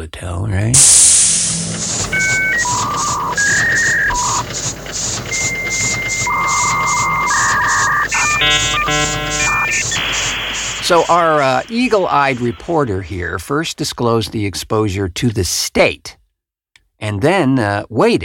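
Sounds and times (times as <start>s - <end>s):
speech: 0.0s - 6.2s, 8.4s - 16.2s, 17.0s - 18.2s
dial-up modem connecting: 1.5s - 13.4s.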